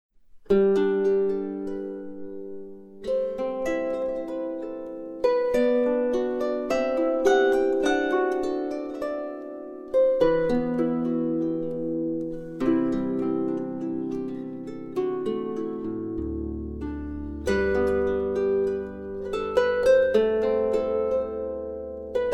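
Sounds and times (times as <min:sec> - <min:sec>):
bridal march on harp: 0:00.3 - 0:22.3.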